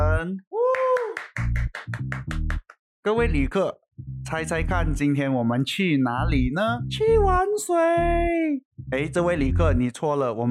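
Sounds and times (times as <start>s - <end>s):
speech: 0.2s - 0.5s, 3.0s - 10.4s
people whooping: 0.6s - 1.3s
loud claps: 0.7s - 2.7s.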